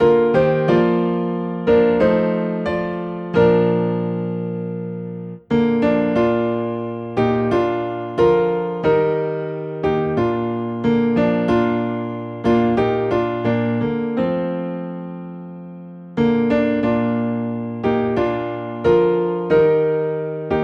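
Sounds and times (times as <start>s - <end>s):
piano in B flat: 0.0s - 20.6s.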